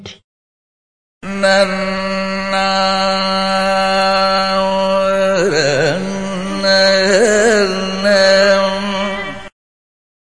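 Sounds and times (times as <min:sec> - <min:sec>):
Indian singing: 0:01.2 - 0:09.5.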